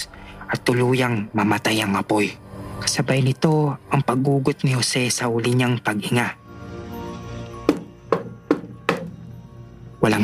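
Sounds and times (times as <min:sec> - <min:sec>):
speech: 0:00.7 - 0:06.4, 0:10.1 - 0:10.2
knocking on a wooden door: 0:07.6 - 0:09.2.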